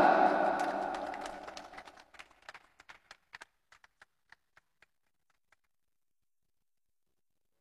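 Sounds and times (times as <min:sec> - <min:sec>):
crowd applause: 0:00.0 - 0:03.8.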